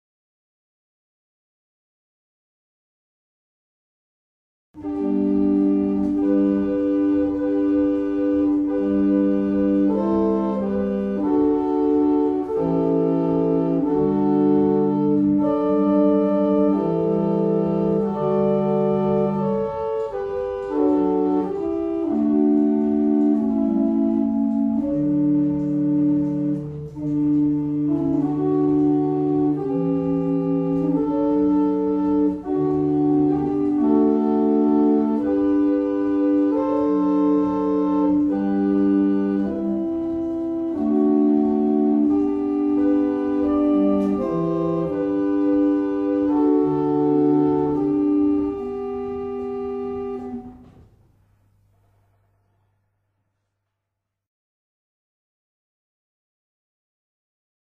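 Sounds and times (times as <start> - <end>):
barrel organs playing a morning hymn: 4.8 - 50.8.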